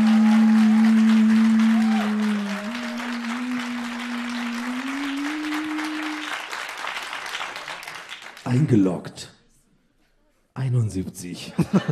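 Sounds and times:
applause: 0.0s - 9.1s
speech: 8.6s - 9.3s, 10.7s - 11.9s
laughter: 11.5s - 11.9s.

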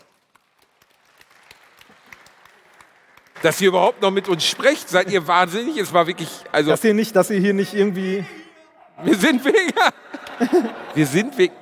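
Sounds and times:
audience clapping: 0.0s - 6.4s, 9.2s - 11.5s
speech: 3.4s - 8.4s, 9.0s - 11.5s
laughter: 7.5s - 11.5s.

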